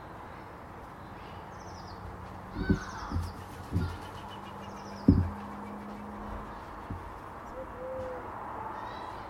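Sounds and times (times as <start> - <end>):
collared doves calling: 1.6 - 9.1
collared doves flying: 2.6 - 6.7.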